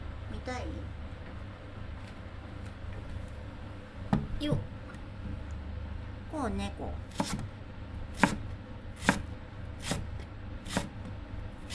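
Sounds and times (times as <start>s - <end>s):
low hum: 0.0s - 11.7s
speech: 0.4s - 1.0s, 4.4s - 4.8s, 6.3s - 7.6s
knife chopping green onions on a cutting board: 7.1s - 11.7s.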